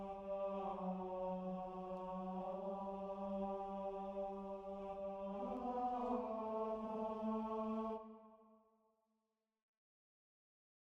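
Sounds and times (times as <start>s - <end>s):
tenor singing: 0.0s - 8.1s.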